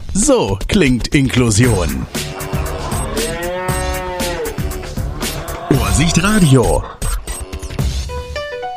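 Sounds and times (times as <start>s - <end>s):
speech: 0.2s - 2.2s, 6.0s - 7.0s
cow mooing: 2.0s - 8.0s.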